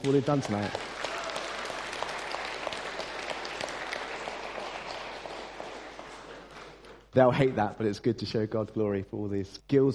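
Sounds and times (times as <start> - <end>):
speech: 0.0 - 0.9, 7.2 - 9.9
audience applause: 0.0 - 7.0.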